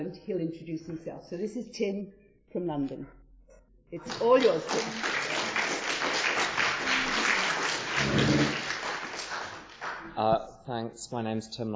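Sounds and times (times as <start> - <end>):
speech: 0.0 - 3.2, 3.9 - 5.4, 10.2 - 11.7
audience applause: 4.1 - 10.1.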